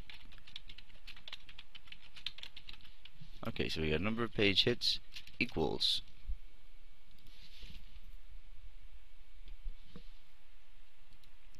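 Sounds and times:
typing on a computer keyboard: 0.0 - 3.2
speech: 3.4 - 6.1.

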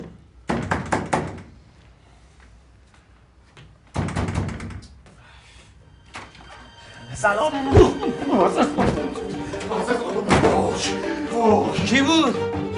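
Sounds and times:
knocking on a door: 0.0 - 1.5, 3.9 - 4.8
speech: 7.2 - 9.8, 10.8 - 12.7
laughter: 7.5 - 11.8.

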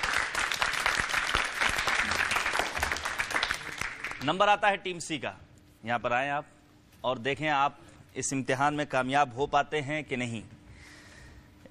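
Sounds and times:
audience applause: 0.0 - 4.2
speech: 4.2 - 10.6.

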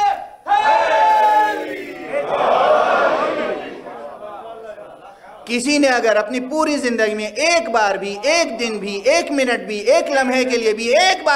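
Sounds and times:
crowd at a rally chanting a slogan in response to a rally call: 0.0 - 4.8
speech: 5.5 - 11.3.

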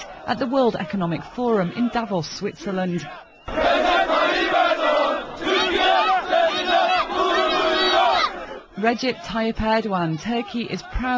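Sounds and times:
crowd of 5,000 chanting: 0.0 - 11.1
speech: 0.2 - 4.6, 8.8 - 11.1.

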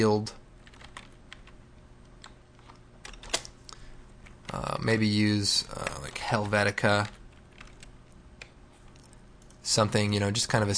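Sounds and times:
speech: 0.0 - 0.4, 4.5 - 7.2, 9.6 - 10.7
typing on a computer keyboard: 0.6 - 1.6, 5.7 - 9.6.

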